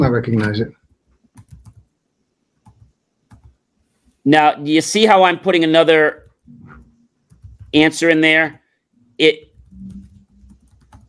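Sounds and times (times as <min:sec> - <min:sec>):
speech: 0:00.0 - 0:00.8, 0:04.2 - 0:06.8, 0:07.7 - 0:08.6, 0:09.2 - 0:09.9
typing on a computer keyboard: 0:01.3 - 0:01.8, 0:02.6 - 0:03.6, 0:07.3 - 0:07.8, 0:09.5 - 0:11.0.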